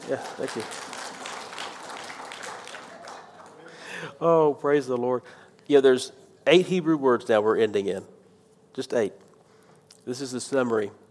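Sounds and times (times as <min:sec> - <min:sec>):
audience clapping: 0:00.0 - 0:04.1
speech: 0:00.1 - 0:01.0, 0:04.2 - 0:08.1, 0:08.8 - 0:09.2, 0:10.0 - 0:11.0.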